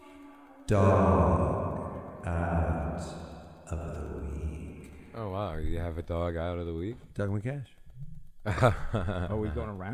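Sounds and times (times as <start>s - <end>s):
speech: 0.7s - 1.4s, 5.2s - 7.8s, 8.4s - 9.9s
echo sound effect: 0.7s - 5.5s.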